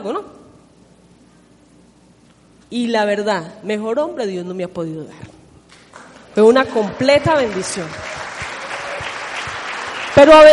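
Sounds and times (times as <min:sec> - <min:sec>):
speech: 0:00.0 - 0:00.4, 0:02.7 - 0:05.3, 0:06.4 - 0:08.1, 0:10.2 - 0:10.5
audience applause: 0:06.8 - 0:10.5.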